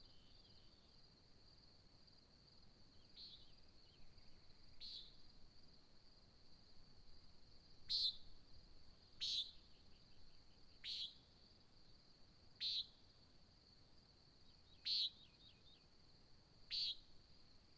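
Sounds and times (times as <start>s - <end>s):
nighthawk calling: 7.9s - 8.2s, 9.2s - 9.6s, 10.8s - 11.2s, 12.6s - 12.9s, 14.8s - 15.3s, 16.7s - 17.0s.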